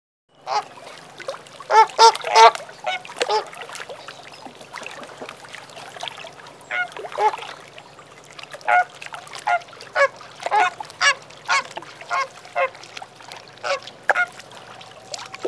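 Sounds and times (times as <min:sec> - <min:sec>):
flamingo calls: 0:00.4 - 0:00.8, 0:01.7 - 0:03.6, 0:06.7 - 0:07.4, 0:08.6 - 0:12.8, 0:13.6 - 0:15.4.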